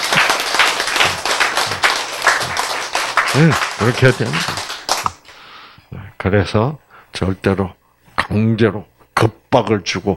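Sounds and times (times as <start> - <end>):
audience clapping: 0.0 - 5.4
speech: 3.4 - 4.6, 6.2 - 10.1.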